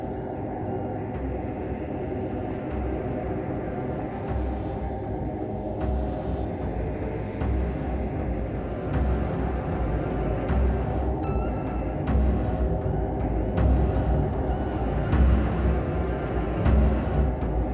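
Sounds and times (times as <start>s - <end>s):
drums: 0.0s - 17.7s.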